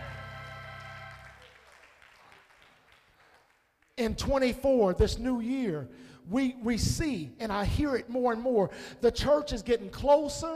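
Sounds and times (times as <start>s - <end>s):
organ-like music: 0.0s - 1.4s
audience clapping hands: 0.0s - 4.1s
speech: 4.0s - 10.5s.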